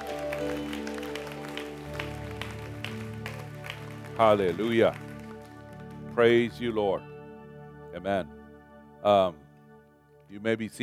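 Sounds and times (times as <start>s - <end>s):
audience clapping: 0.0s - 6.9s
speech: 4.2s - 5.1s, 6.2s - 7.1s, 8.0s - 8.4s, 9.0s - 9.4s, 10.3s - 10.8s.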